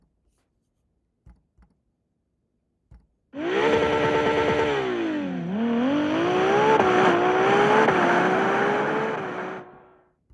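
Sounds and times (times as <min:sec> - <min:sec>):
Ferrari F80 engine revving: 0:03.4 - 0:10.0.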